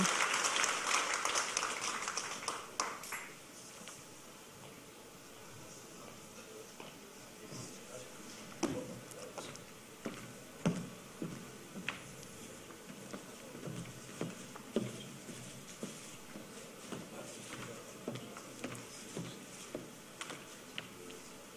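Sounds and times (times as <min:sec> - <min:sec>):
audience applause: 0:00.0 - 0:03.4
soft murmur: 0:03.5 - 0:21.5.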